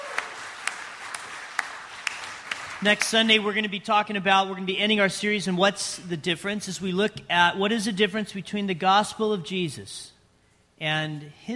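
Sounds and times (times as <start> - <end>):
sharp claps: 0.0 - 3.3
church congregation applause during a Sunday service: 0.0 - 3.4
speech: 2.8 - 10.1, 10.8 - 11.5.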